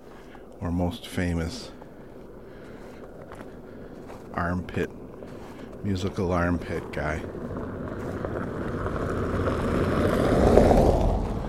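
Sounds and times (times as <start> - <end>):
speech: 0.7 - 1.8, 4.4 - 5.0, 5.8 - 7.8
white pickup truck driving by: 7.2 - 11.4.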